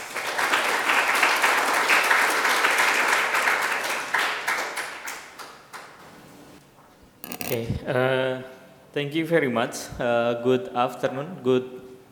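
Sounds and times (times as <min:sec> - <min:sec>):
audience applause welcoming a speaker from Greenpeace Southeast Asia: 0:00.0 - 0:06.0
speech: 0:07.5 - 0:11.8.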